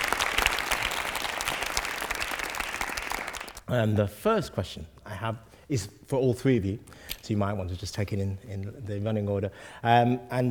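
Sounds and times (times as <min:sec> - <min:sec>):
audience clapping: 0:00.0 - 0:03.6
speech: 0:03.7 - 0:10.4.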